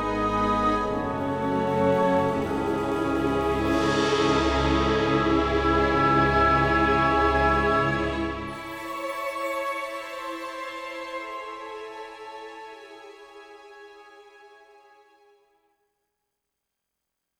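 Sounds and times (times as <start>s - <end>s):
castle music: 0.0s - 13.4s.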